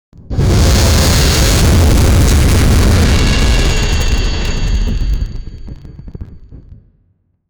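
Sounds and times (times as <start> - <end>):
intense electricity crackling: 0.3 - 6.1.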